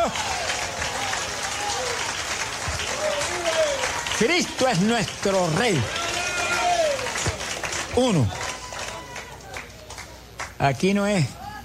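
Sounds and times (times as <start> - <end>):
audience applauding: 0.0 - 10.6
speech: 4.2 - 6.0, 8.0 - 8.4, 10.6 - 11.4.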